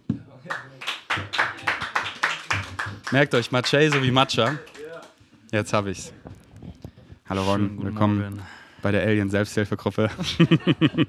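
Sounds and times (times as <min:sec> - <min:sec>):
applause: 0:00.4 - 0:05.2
speech: 0:03.1 - 0:04.7, 0:05.5 - 0:06.2, 0:07.3 - 0:11.0
laughter: 0:10.0 - 0:11.0.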